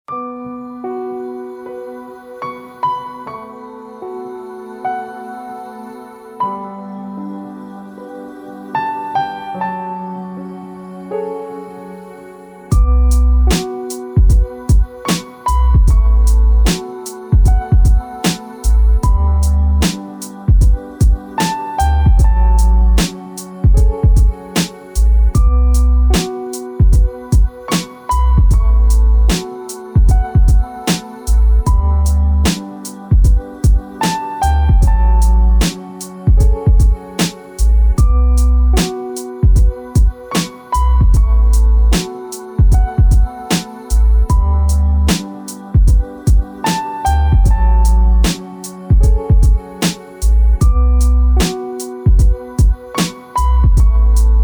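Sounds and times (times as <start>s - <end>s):
beat tape instrumental beat: 12.7s - 54.4s.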